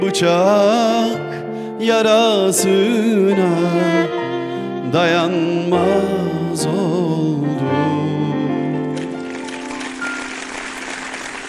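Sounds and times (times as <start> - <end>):
speech: 0.0 - 4.3, 4.9 - 8.6
audience applause: 9.0 - 11.4.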